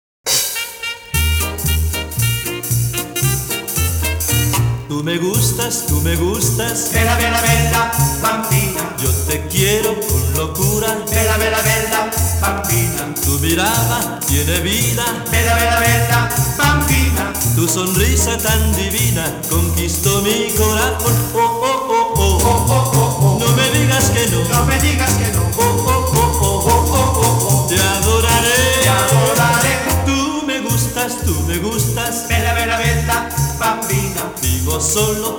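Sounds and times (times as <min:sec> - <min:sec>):
latin quartet playing: 0:00.3 - 0:35.3.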